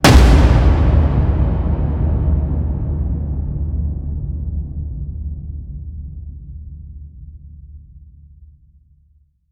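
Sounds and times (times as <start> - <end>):
designed cinematic slam hit: 0.0 - 6.6.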